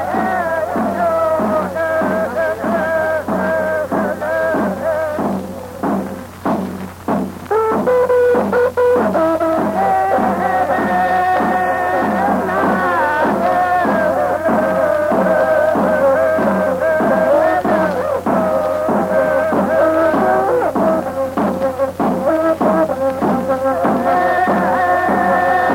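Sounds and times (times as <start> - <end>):
Mapuche machi chanting in Collico Puerto Saavedra Chile: 0.0 - 6.9, 7.5 - 25.7
various Mapuche instruments playing: 0.0 - 25.7.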